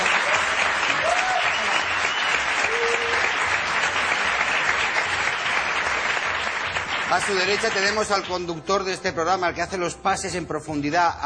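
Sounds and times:
audience applause: 0.0s - 8.6s
speech: 7.1s - 11.2s.

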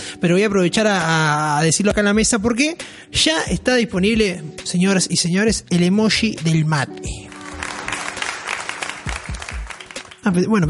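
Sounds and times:
speech: 0.2s - 7.3s, 10.3s - 10.6s
audience applause: 7.2s - 10.2s.

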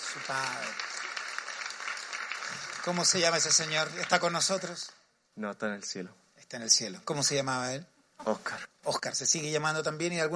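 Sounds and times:
audience applause: 0.0s - 4.9s
speech: 0.1s - 0.9s, 2.5s - 10.3s.

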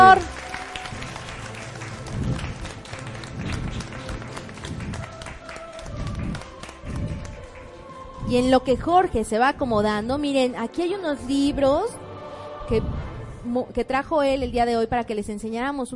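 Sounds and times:
audience applause: 0.0s - 8.2s
speech: 8.3s - 12.0s, 12.7s - 15.9s.

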